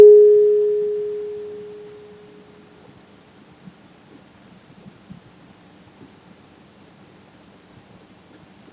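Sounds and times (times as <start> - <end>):
weighted tuning forks: 0.0 - 2.2.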